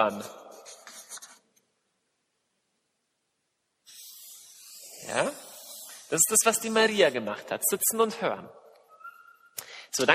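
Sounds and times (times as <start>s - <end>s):
speech: 0.0s - 0.4s, 5.1s - 5.4s, 6.1s - 8.6s, 9.9s - 10.1s
handwriting scratching: 0.6s - 1.5s, 3.9s - 6.6s
hissy noise: 3.9s - 7.1s.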